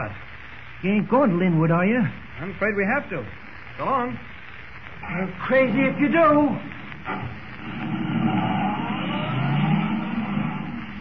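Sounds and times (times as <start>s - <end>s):
speech: 0.0s - 0.2s, 0.8s - 4.3s, 5.0s - 8.0s
car accelerating at top speed: 7.1s - 11.0s.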